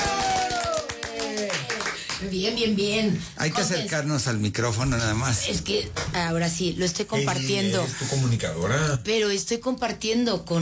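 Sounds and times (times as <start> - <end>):
rhythmic hand clapping welcoming a guest: 0.0 - 2.3, 6.0 - 6.2
speech: 2.2 - 10.6.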